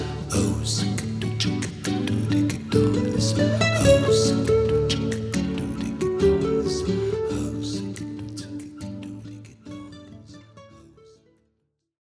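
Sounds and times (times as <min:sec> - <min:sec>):
emotional samba music: 0:00.0 - 0:09.4.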